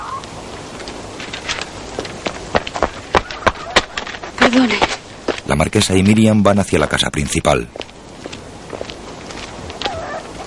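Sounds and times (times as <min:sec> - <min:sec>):
running footsteps of a daughter hurrying toward her mother on an estate: 0:00.8 - 0:06.2, 0:07.7 - 0:10.0
speech: 0:04.5 - 0:07.9.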